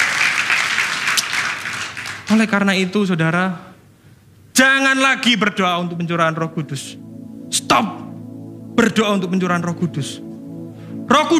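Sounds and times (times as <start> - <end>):
crowd applause: 0.0 - 2.5
speech: 2.3 - 3.7, 4.6 - 8.0, 8.8 - 10.3, 11.1 - 11.3.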